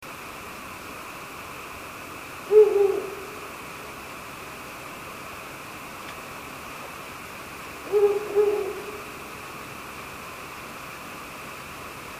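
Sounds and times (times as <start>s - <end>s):
background hiss: 0.0s - 12.1s
owl hooting: 2.4s - 3.5s, 7.8s - 9.3s.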